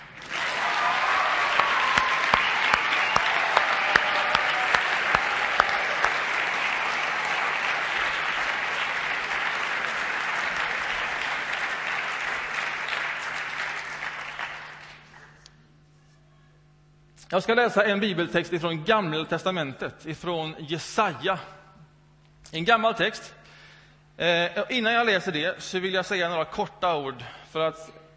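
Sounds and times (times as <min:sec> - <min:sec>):
applause for a choir leader: 0:00.0 - 0:15.5
speech: 0:17.3 - 0:21.6, 0:22.5 - 0:23.4, 0:24.2 - 0:28.0.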